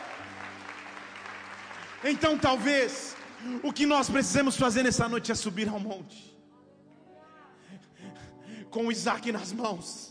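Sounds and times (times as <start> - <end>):
audience applause: 0.0 - 4.4
speech: 2.0 - 6.4, 8.7 - 10.0.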